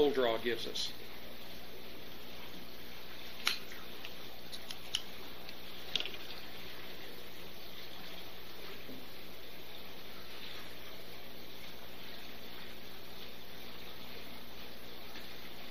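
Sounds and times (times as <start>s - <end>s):
speech: 0.0s - 1.2s
quiet steady hiss: 0.0s - 15.6s
Drew Estate Java Red cigar being cut: 3.4s - 3.8s.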